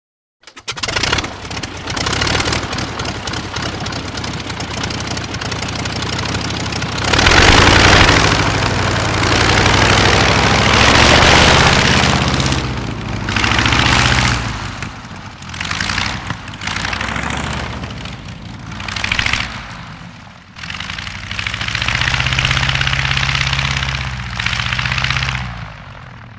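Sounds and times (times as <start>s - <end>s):
old prop aircraft engine starting and taxiing away with short revs: 0.4s - 26.3s.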